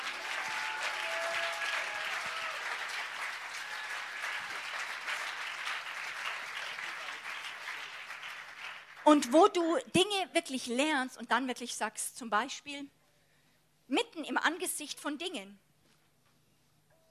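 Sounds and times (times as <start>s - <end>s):
audience applause: 0.0s - 9.1s
speech: 9.1s - 13.0s, 13.9s - 15.7s.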